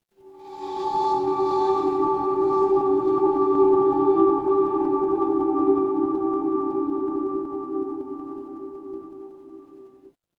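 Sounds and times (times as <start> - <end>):
dark horror ambience: 0.2 - 10.1.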